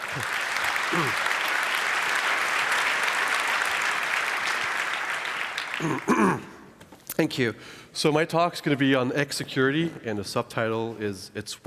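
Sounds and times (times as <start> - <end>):
audience applauding a speaker at a security conference: 0.0 - 6.5
speech: 0.2 - 1.4, 5.8 - 6.5, 7.2 - 11.6.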